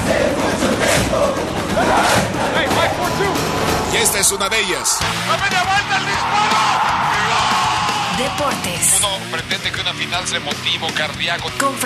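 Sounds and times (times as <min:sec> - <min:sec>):
large stadium crowd cheering: 0:00.0 - 0:09.8
speech: 0:04.3 - 0:07.4, 0:08.2 - 0:11.8.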